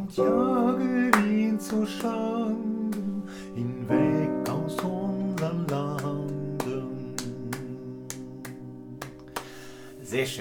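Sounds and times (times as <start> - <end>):
speech: 0.1 - 4.1, 10.1 - 10.3
hand claps accompanying a folk song exercise: 1.1 - 3.2, 4.4 - 9.8.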